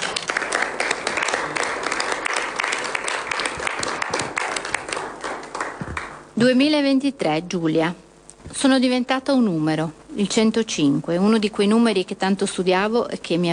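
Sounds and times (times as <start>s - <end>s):
audience applause: 0.0s - 6.3s
speech: 6.4s - 8.0s, 8.6s - 13.5s.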